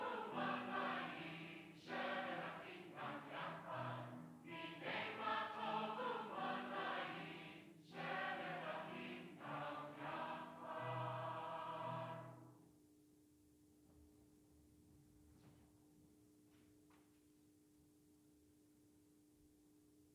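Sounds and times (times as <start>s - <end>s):
upbeat choir singing: 0.0s - 12.4s.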